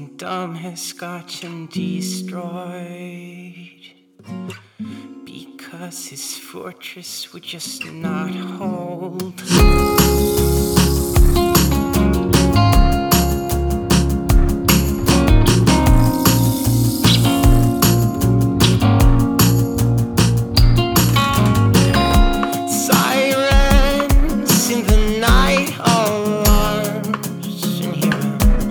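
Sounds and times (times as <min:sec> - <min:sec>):
piano: 0:09.6 - 0:28.6.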